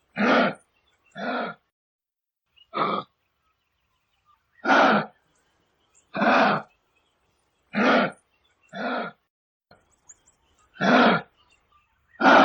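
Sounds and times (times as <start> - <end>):
kangaroo: 0.0 - 1.7, 2.6 - 3.2, 4.6 - 5.2, 6.1 - 6.7, 7.7 - 9.2, 10.7 - 11.4, 12.2 - 12.4.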